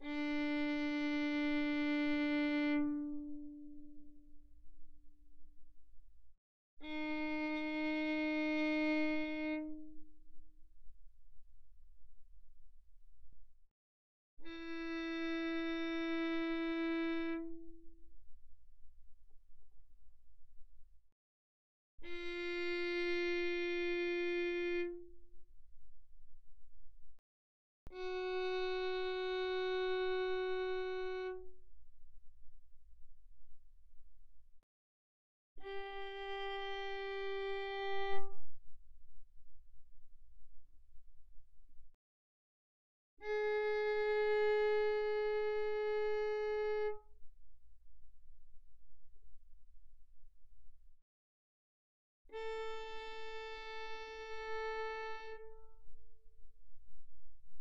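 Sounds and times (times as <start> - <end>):
violin arco pianissimo on D string: 0.0 - 5.0, 6.8 - 11.0, 14.4 - 18.4, 22.0 - 25.7, 27.9 - 32.4, 35.6 - 40.4, 43.2 - 50.0, 52.3 - 57.6.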